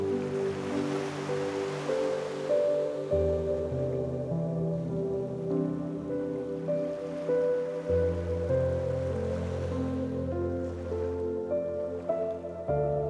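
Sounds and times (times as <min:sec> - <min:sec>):
serene ocean waves: 0:00.0 - 0:13.0
soothing piano melody: 0:00.0 - 0:13.0.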